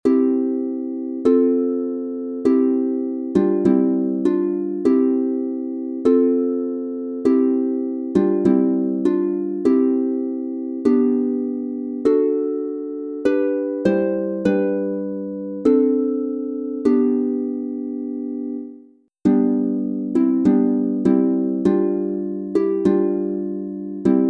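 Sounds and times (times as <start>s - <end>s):
harp playing a Christmas carol in C major: 0.0s - 24.2s.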